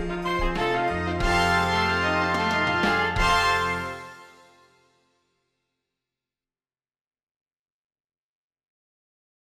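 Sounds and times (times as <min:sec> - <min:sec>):
three horns playing lip slurs in fifths: 0:00.0 - 0:04.5.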